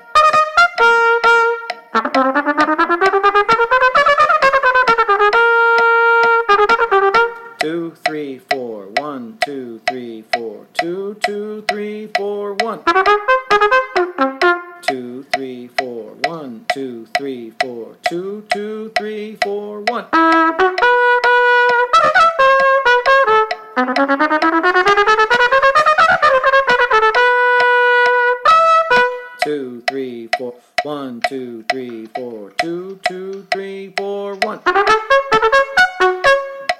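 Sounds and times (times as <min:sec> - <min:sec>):
concerto music: 0:00.0 - 0:08.0, 0:12.8 - 0:14.9, 0:20.0 - 0:29.5, 0:32.9 - 0:36.7
person counting: 0:00.0 - 0:36.7.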